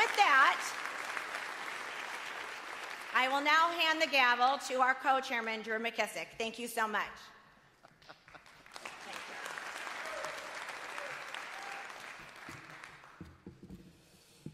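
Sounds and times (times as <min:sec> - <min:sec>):
audience applause: 0:00.0 - 0:03.4, 0:08.2 - 0:13.4
speech: 0:03.2 - 0:07.4.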